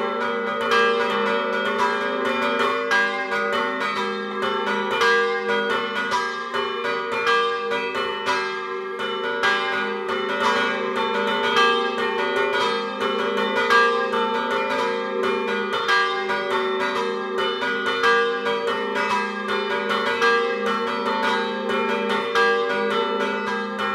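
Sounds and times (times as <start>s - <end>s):
bells ringing: 0.0s - 23.9s.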